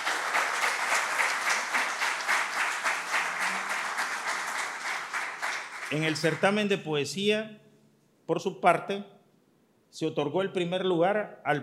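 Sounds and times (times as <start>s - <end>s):
crowd applause: 0.0s - 6.6s
speech: 5.9s - 7.6s, 8.3s - 9.2s, 9.9s - 11.6s.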